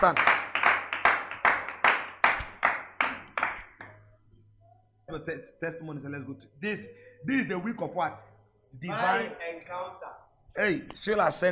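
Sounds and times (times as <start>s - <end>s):
speech: 0.0s - 0.3s, 5.1s - 11.5s
audience clapping in unison: 0.0s - 3.9s.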